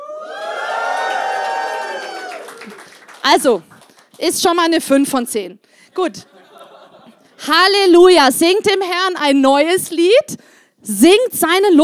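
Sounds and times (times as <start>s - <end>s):
audience cheering loudly: 0.0s - 4.2s
speech: 3.2s - 6.4s, 7.4s - 11.8s
laughter: 5.9s - 7.4s.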